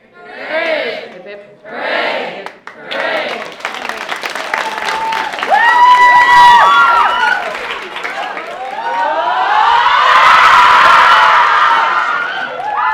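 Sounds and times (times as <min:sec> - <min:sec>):
crowd shouting hooray: 0:04.5 - 0:12.9.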